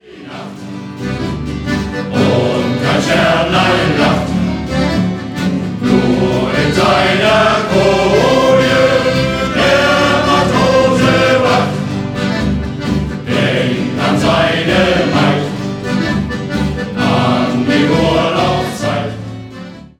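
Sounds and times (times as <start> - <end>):
shanty choir singing: 0.0 - 19.9.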